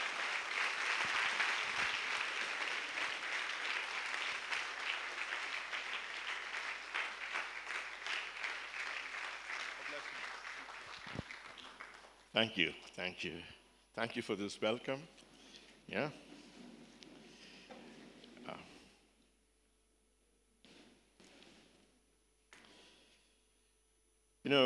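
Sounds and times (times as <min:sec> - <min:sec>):
church congregation applauding to welcome a pastor: 0:00.0 - 0:12.4
speech: 0:12.4 - 0:15.3, 0:15.9 - 0:16.2, 0:24.5 - 0:24.6.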